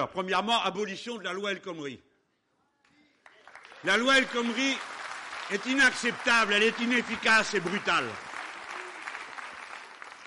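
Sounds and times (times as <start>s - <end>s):
speech: 0.0s - 2.1s, 3.8s - 8.2s
audience applause: 3.2s - 10.2s.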